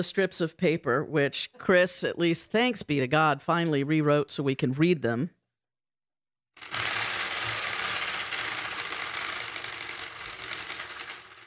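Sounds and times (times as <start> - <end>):
speech: 0.0 - 5.4
bicycle wheel prize spinner spinning: 6.6 - 11.4.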